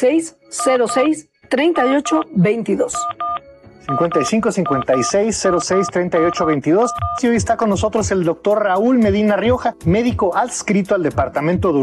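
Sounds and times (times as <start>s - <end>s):
speech: 0.0s - 3.2s, 3.8s - 11.8s
telephone touch-tone dialing beeps: 0.6s - 1.1s, 1.7s - 7.3s.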